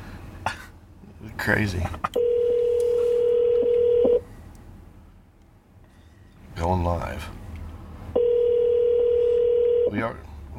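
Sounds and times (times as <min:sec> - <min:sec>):
speech: 0:01.5 - 0:02.2, 0:06.6 - 0:07.4, 0:09.9 - 0:10.5
telephone tone while dialing: 0:02.2 - 0:04.2, 0:08.2 - 0:09.9.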